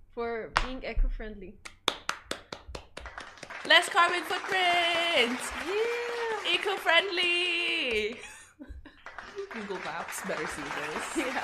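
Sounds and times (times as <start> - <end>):
speech: 0.2 - 1.8, 3.6 - 8.7, 9.4 - 11.4
hand clap: 1.6 - 8.3, 8.9 - 11.4
laughter: 7.9 - 11.4.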